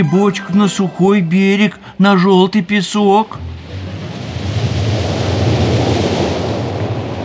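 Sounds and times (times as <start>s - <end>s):
speech: 0.0s - 3.5s
laughter: 0.0s - 4.6s
rough sea: 0.0s - 7.2s
stormy winds: 3.3s - 7.2s.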